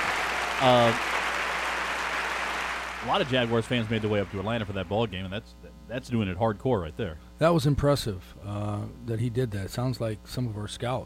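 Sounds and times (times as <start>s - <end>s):
round of applause: 0.0s - 5.1s
speech: 0.6s - 1.2s, 3.0s - 11.0s.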